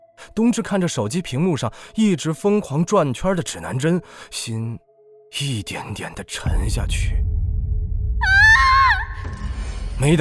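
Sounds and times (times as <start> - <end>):
speech: 0.4 - 7.2, 10.0 - 10.1
young woman screaming for help: 8.2 - 9.3.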